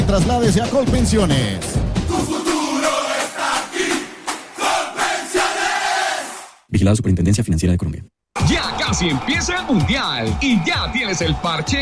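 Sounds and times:
speech: 0:00.1 - 0:02.4, 0:06.7 - 0:11.7
stadium crowd cheering: 0:02.1 - 0:06.5, 0:08.4 - 0:11.7.

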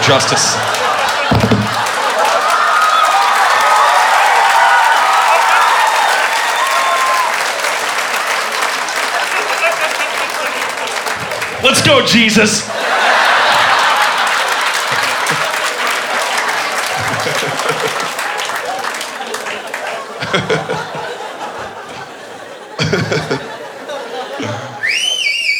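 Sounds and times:
applause: 0:00.0 - 0:21.3
laughter: 0:00.0 - 0:25.5
speech: 0:00.1 - 0:01.7, 0:11.6 - 0:12.9
audience member loud whistling during applause: 0:24.8 - 0:25.5.

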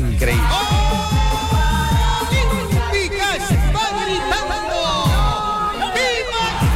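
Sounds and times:
thumping low beat: 0:00.0 - 0:04.0, 0:05.0 - 0:05.4
big crowd shouting and cheering: 0:00.0 - 0:06.7.

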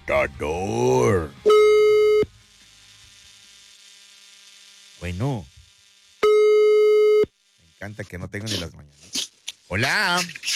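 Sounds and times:
speech: 0:00.1 - 0:01.4, 0:07.9 - 0:10.5
telephone line tone while dialing: 0:01.5 - 0:02.3, 0:06.2 - 0:07.3.

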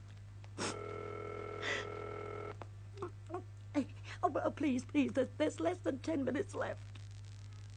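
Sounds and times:
telephone ring tone as an operator puts a call through: 0:00.7 - 0:02.6
speech: 0:04.3 - 0:06.9.

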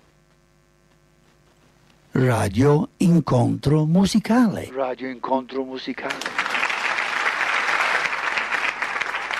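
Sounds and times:
speech: 0:02.2 - 0:06.4
applause: 0:06.0 - 0:09.3.

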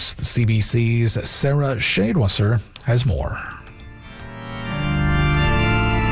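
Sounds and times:
speech: 0:00.2 - 0:03.6
historic Casavant Opus 3358 pipe organ in University of Alberta Convocation Hall: 0:03.6 - 0:06.1.

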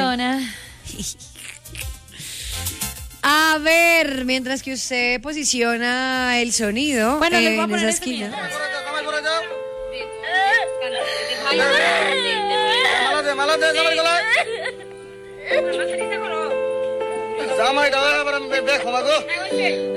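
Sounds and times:
speech: 0:00.1 - 0:10.1, 0:11.5 - 0:12.3, 0:13.3 - 0:14.6, 0:15.5 - 0:16.4, 0:17.5 - 0:19.9
young girl screaming and crying: 0:08.3 - 0:15.8.

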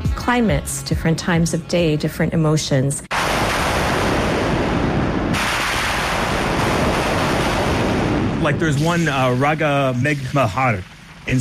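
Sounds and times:
speech: 0:00.3 - 0:03.1, 0:08.5 - 0:11.3
synthesized thunder sounds: 0:03.1 - 0:11.3.

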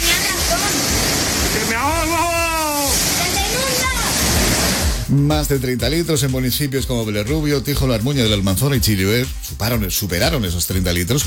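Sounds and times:
heavy rain: 0:00.0 - 0:05.1
speech: 0:05.1 - 0:11.2.

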